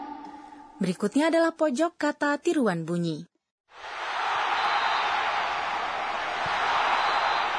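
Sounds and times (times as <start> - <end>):
speech: 0.8 - 3.3
crowd shouting and cheering: 3.8 - 7.5.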